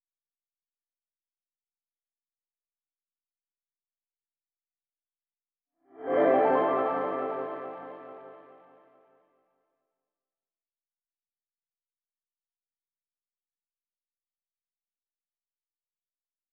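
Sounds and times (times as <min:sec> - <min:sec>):
172 BPM A minor arpeggio melody: 0:06.0 - 0:09.0.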